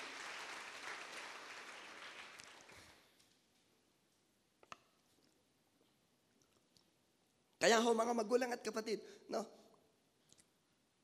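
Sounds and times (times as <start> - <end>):
audience clapping in praise: 0.0 - 3.3
speech: 7.6 - 9.6.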